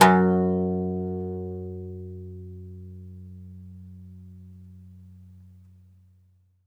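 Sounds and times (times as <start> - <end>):
oud F sharp 1 plucked note: 0.0 - 5.0.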